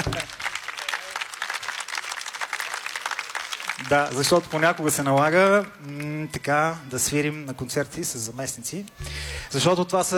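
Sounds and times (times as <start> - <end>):
audience applause: 0.0 - 6.2
speech: 3.9 - 10.1.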